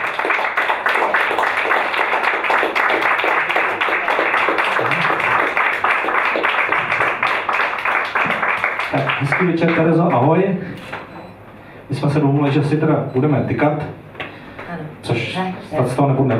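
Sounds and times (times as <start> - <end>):
audience applause welcoming a guest onto a stage: 0.0 - 10.2
speech: 9.0 - 11.0, 12.0 - 14.0, 15.4 - 16.3.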